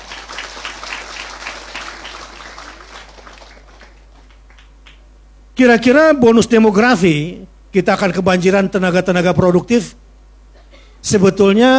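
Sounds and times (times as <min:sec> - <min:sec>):
audience applauding to welcome an Islamic religious teacher: 0:00.0 - 0:05.1
speech: 0:05.6 - 0:10.0, 0:11.0 - 0:11.7.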